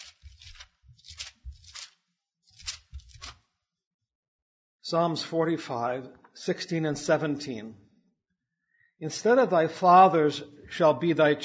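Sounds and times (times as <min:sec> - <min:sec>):
pages of a Bible being turned: 0:00.0 - 0:03.5
speech: 0:04.9 - 0:07.8, 0:09.0 - 0:11.4.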